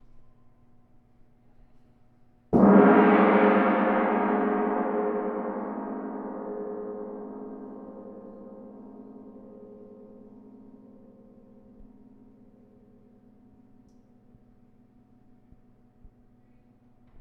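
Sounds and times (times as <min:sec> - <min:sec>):
gong: 0:02.5 - 0:13.9.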